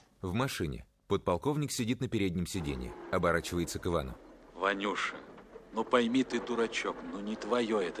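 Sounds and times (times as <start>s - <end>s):
speech: 0.2s - 7.9s
old man pushing a door shut: 2.5s - 7.9s.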